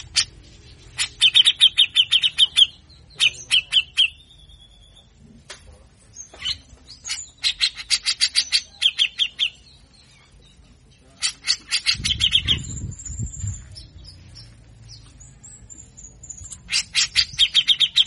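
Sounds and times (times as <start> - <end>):
Grey-cheeked bulbul song of harsh chattering notes: 0.0 - 5.2, 6.0 - 18.0.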